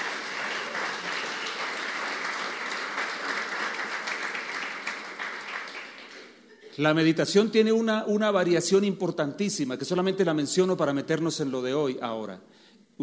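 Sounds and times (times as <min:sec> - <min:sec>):
audience applauding in welcome: 0:00.0 - 0:06.5
speech: 0:06.8 - 0:13.0.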